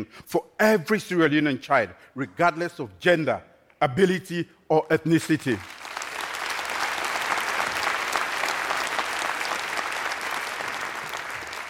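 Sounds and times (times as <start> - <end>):
speech: 0.0 - 5.8
audience applause: 5.5 - 11.6.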